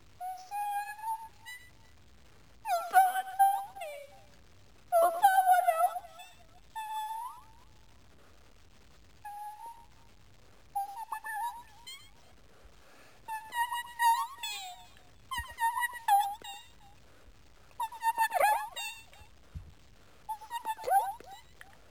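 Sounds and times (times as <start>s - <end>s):
a cappella singing: 0.2s - 1.9s, 2.6s - 7.6s, 13.3s - 16.9s, 17.8s - 19.3s, 20.3s - 21.6s.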